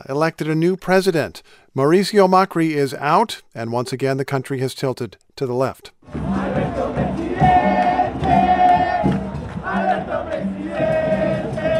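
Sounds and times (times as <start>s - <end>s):
speech: 0.0s - 7.5s
large crowd in Buenos Aires chanting to celebrate a new president: 6.1s - 11.7s.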